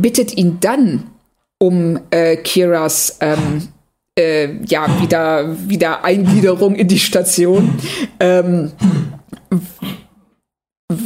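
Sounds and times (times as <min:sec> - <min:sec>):
speech: 0:00.0 - 0:10.0
cough: 0:03.2 - 0:03.7, 0:06.1 - 0:10.2.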